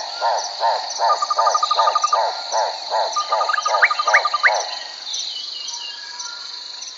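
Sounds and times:
several birds chirping in a forest: 0.0s - 5.5s.

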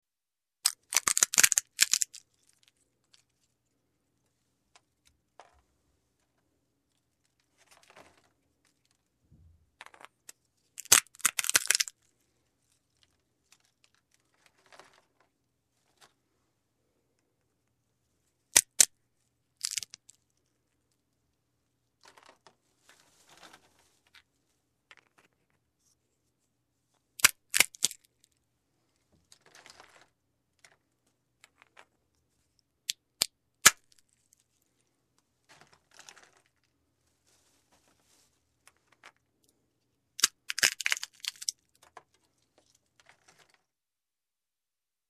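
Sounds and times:
plastic sealed jar opening: 0.7s - 2.2s, 10.8s - 11.9s, 18.6s - 18.9s, 27.2s - 28.1s, 40.2s - 41.9s.

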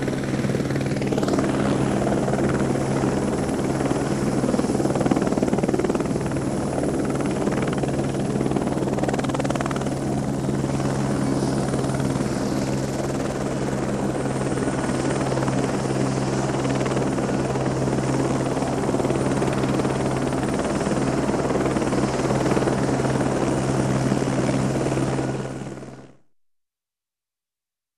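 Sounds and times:
helicopter approaching and hovering in the air: 0.0s - 26.1s.

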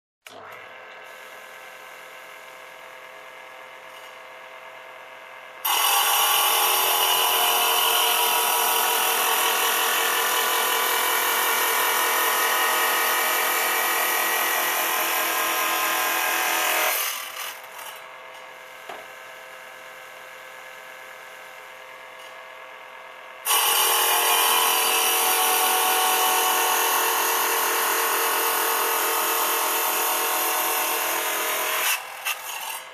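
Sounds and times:
construction noise: 5.6s - 18.3s, 23.4s - 32.9s.

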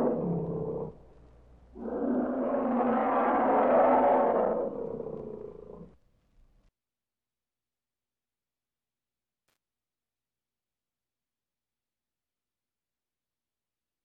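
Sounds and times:
angry feline roaring in a cage: 0.0s - 1.0s, 1.8s - 6.0s.

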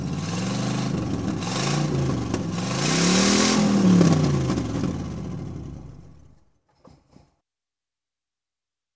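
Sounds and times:
car engine: 0.0s - 6.6s.

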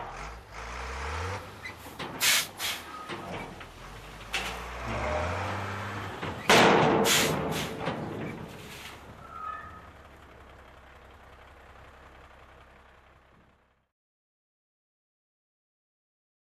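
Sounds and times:
garbage truck approaching: 0.0s - 13.9s.

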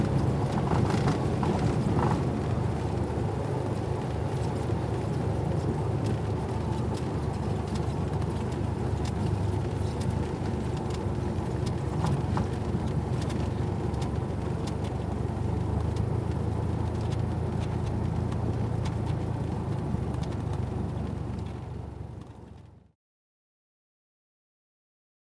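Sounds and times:
aircraft propeller engine: 0.0s - 22.8s.

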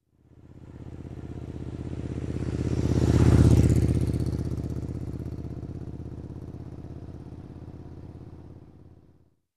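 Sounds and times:
motorcycle passing by: 0.2s - 9.2s.

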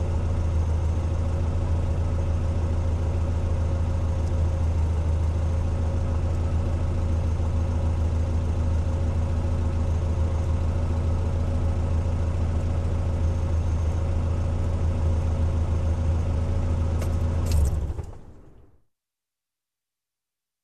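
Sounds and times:
SUV engine running idle: 0.0s - 18.7s
SUV engine ignition: 17.4s - 18.6s.

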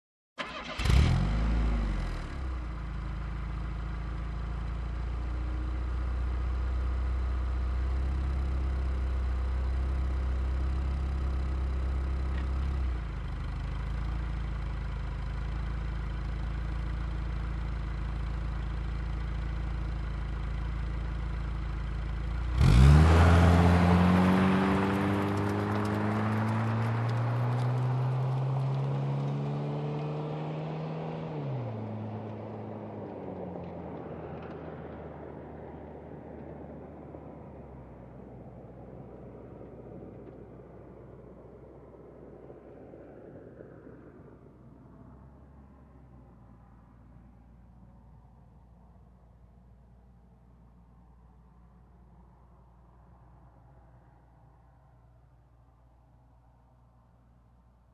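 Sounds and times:
car engine ignition: 0.4s - 42.8s
car driving away: 0.4s - 49.4s.

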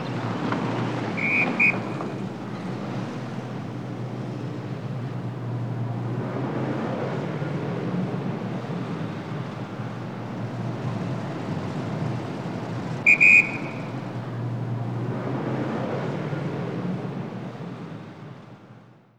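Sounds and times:
city traffic: 0.0s - 19.0s
whistle: 1.1s - 2.8s, 13.0s - 14.4s.

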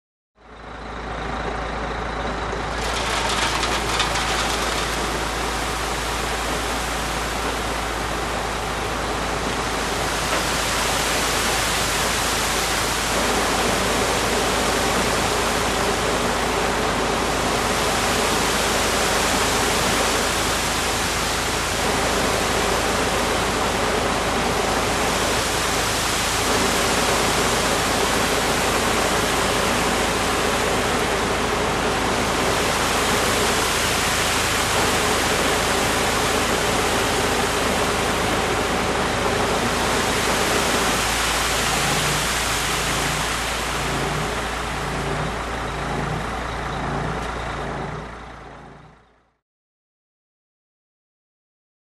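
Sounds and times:
construction noise: 0.4s - 49.3s.

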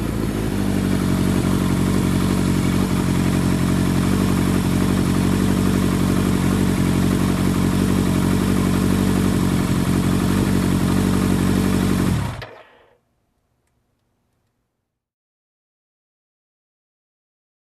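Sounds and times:
motorcycles: 0.0s - 12.9s.

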